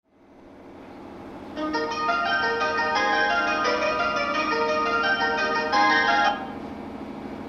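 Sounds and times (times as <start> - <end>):
melody: 1.6 - 6.6.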